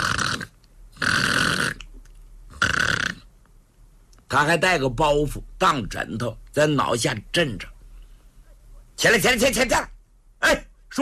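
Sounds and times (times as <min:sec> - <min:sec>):
man imitating the heavy snoring of a drunk man sleeping soundly: 0:00.0 - 0:01.9, 0:02.5 - 0:03.3
speech: 0:04.3 - 0:07.7, 0:09.0 - 0:11.0.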